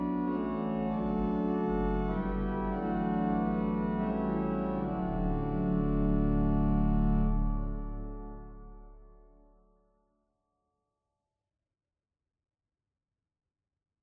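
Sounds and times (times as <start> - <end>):
organ: 0.0 - 9.1.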